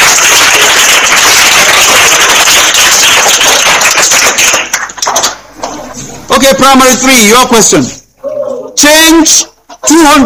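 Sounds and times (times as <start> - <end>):
group applauding: 0.0 - 5.8
speech: 6.6 - 8.0, 8.8 - 10.2.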